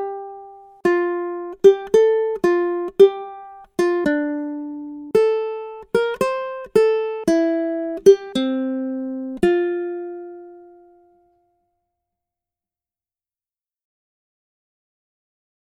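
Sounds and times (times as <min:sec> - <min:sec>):
ukulele accompaniment: 0:00.0 - 0:11.4.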